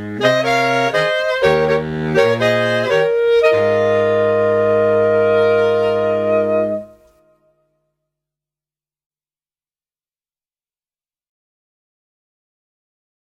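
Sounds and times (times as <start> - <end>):
jazz band playing in Oxfordshire: 0.0 - 7.0.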